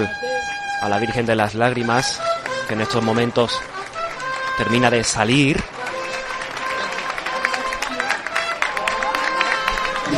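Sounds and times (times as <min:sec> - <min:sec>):
speech: 0:00.8 - 0:03.8, 0:04.6 - 0:05.7
applause for the float bearers: 0:02.2 - 0:10.1.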